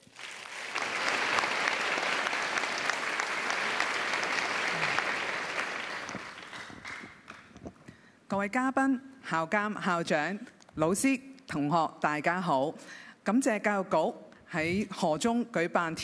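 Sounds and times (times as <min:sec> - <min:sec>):
warm applause from audience: 0:00.0 - 0:07.6
speech: 0:08.4 - 0:16.0.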